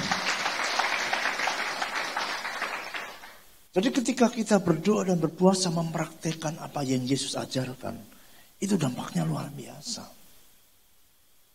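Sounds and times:
audience applause: 0:00.0 - 0:03.4
speech: 0:03.8 - 0:10.2.

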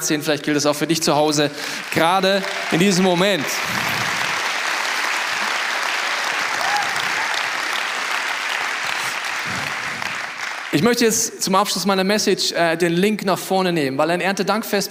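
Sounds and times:
speech: 0:00.0 - 0:04.0, 0:10.8 - 0:14.8
audience applause: 0:01.5 - 0:10.9.

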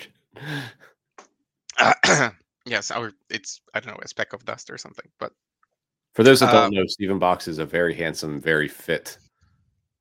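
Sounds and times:
throat clearing: 0:01.7 - 0:02.3
speech: 0:01.8 - 0:05.5, 0:06.2 - 0:09.2.

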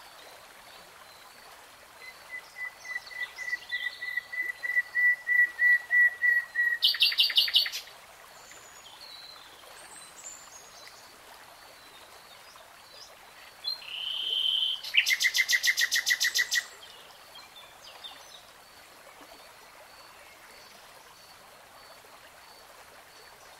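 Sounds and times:
nightingale song: 0:02.0 - 0:07.9, 0:13.6 - 0:18.5.

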